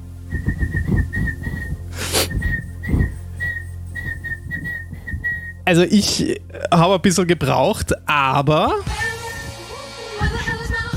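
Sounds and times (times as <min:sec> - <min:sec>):
low hum: 0:00.0 - 0:09.5
person whistling a pop song melody: 0:00.3 - 0:05.6, 0:09.1 - 0:09.7
speech: 0:05.7 - 0:09.0.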